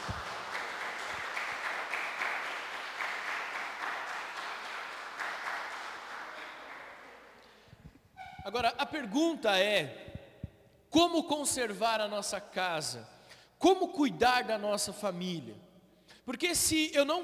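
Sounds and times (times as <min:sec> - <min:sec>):
audience applauding: 0:00.0 - 0:07.4
speech: 0:08.5 - 0:10.0, 0:10.9 - 0:17.2.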